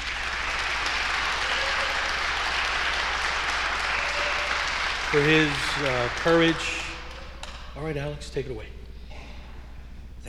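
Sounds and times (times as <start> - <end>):
round of applause: 0.0 - 7.9
speech: 5.1 - 6.8, 7.8 - 8.8.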